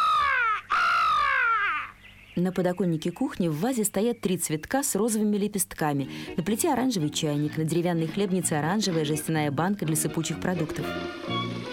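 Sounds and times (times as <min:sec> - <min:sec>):
crow cawing: 0:00.0 - 0:02.0
speech: 0:02.4 - 0:11.5.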